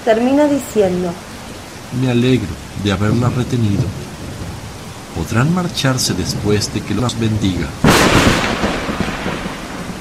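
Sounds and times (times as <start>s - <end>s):
speech: 0.0s - 1.2s, 1.9s - 4.0s, 5.2s - 8.4s
loud thunderclap from a nearby lightning strike: 2.3s - 9.9s.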